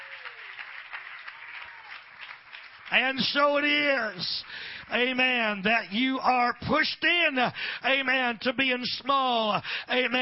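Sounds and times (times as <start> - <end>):
audience clapping hands: 0.0 - 5.2
speech: 2.9 - 10.2.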